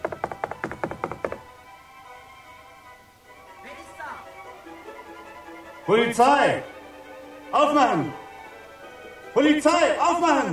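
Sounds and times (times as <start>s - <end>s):
knuckles knocking loudly on a door: 0.0s - 1.5s
speech: 5.9s - 6.7s, 7.5s - 8.2s, 9.4s - 10.5s.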